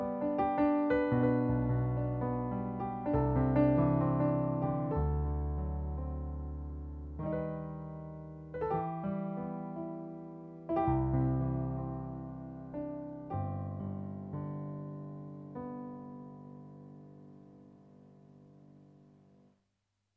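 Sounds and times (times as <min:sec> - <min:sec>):
piano piece: 0:00.0 - 0:19.4.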